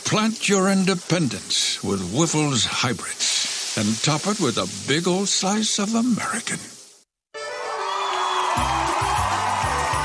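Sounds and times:
speech: 0:00.1 - 0:06.8
crowd roaring and cheering: 0:07.4 - 0:10.0.

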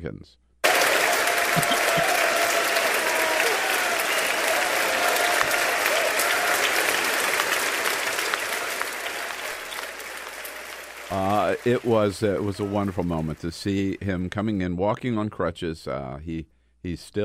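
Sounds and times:
speech: 0:00.0 - 0:00.5, 0:01.5 - 0:01.8, 0:11.1 - 0:17.2
members of the House of Representatives applauding: 0:00.6 - 0:14.2.

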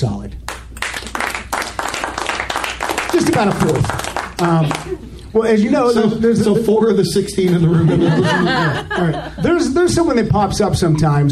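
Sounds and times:
round of applause: 0:00.5 - 0:05.0
speech: 0:03.2 - 0:11.3
laughter: 0:04.4 - 0:10.0.

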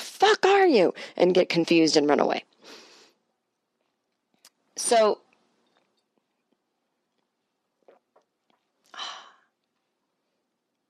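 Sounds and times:
speech: 0:00.3 - 0:02.8, 0:04.8 - 0:05.2
person sipping a drink: 0:07.8 - 0:08.8.

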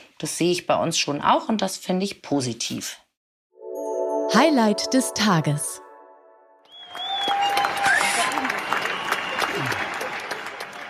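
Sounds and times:
speech: 0:00.2 - 0:03.0, 0:04.3 - 0:05.8
high sliding whistle: 0:06.6 - 0:09.8
evening neighbourhood clapping for medical staff: 0:06.7 - 0:10.8.

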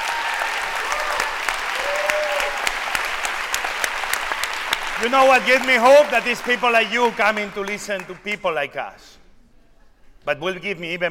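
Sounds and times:
audience applause: 0:00.0 - 0:08.2
speech: 0:05.0 - 0:09.2, 0:10.2 - 0:11.0.

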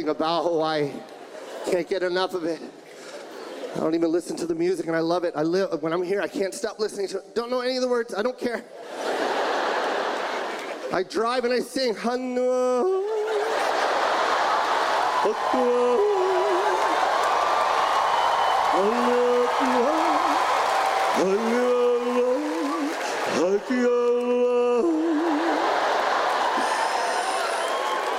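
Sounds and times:
speech: 0:00.0 - 0:02.8, 0:03.7 - 0:09.2, 0:10.9 - 0:13.1, 0:15.2 - 0:16.1, 0:18.8 - 0:19.2, 0:21.2 - 0:21.6
laughter: 0:01.0 - 0:04.0, 0:08.6 - 0:11.2, 0:12.4 - 0:28.1
audience clapping and cheering: 0:13.2 - 0:28.1.

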